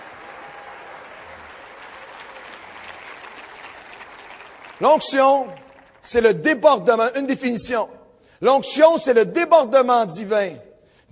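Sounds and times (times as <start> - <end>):
audience applauding: 0.0 - 6.2
speech: 4.8 - 11.1.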